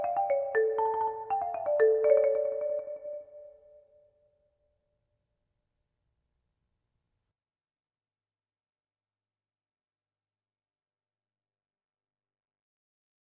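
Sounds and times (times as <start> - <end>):
keyboard: 0.0 - 3.8.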